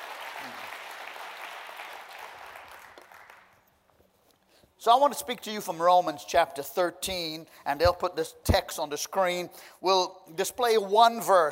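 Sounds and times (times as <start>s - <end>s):
audience applauding: 0.0s - 3.6s
speech: 4.8s - 11.5s.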